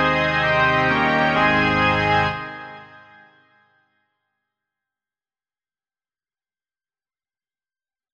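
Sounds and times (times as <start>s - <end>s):
organ: 0.0s - 3.3s.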